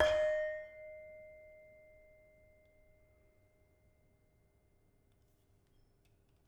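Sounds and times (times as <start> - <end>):
saron in gamelan: 0.0 - 1.8.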